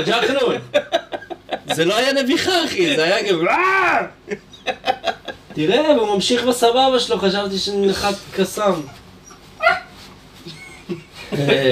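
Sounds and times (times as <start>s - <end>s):
speech: 0.0s - 1.1s, 1.7s - 9.0s, 10.4s - 11.7s
laughter: 0.4s - 2.0s, 4.2s - 6.0s, 10.4s - 11.7s
dog yelping: 8.7s - 10.0s.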